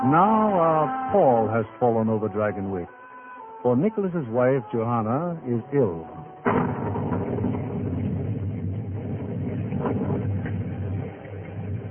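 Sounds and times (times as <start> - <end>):
speech: 0.0 - 3.0, 3.6 - 6.6
thunder of the Catskills: 6.4 - 11.8.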